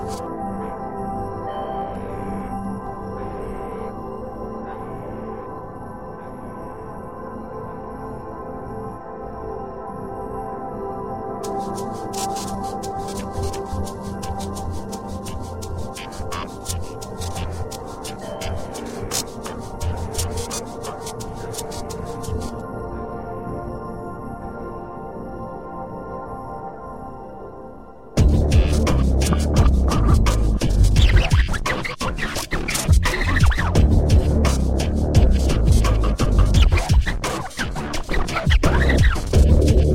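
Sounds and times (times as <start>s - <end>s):
wobbledelic crunktronica electronic music: 11.4s - 22.6s, 28.2s - 39.9s.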